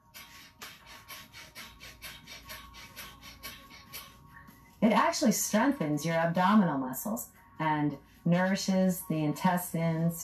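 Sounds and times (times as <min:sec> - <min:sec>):
rapid breathing in and out through the nostrils: 0:00.0 - 0:04.8
speech: 0:04.8 - 0:10.2.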